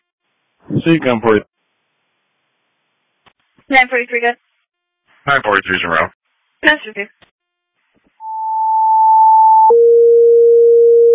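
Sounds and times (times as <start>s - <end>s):
speech: 0.8s - 1.5s, 3.7s - 4.4s, 5.2s - 7.2s
dispatch advisory alarm tone: 8.2s - 11.1s.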